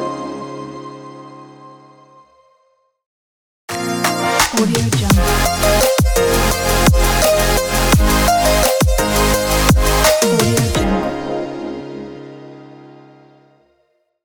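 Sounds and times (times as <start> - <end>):
bright motivational hip hop music: 3.7 - 11.2.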